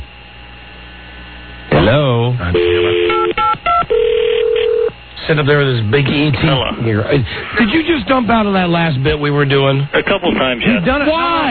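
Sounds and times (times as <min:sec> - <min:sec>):
speech: 0:01.8 - 0:03.5, 0:05.3 - 0:11.4
electronic telephone ring tones over a phone line: 0:02.6 - 0:04.9.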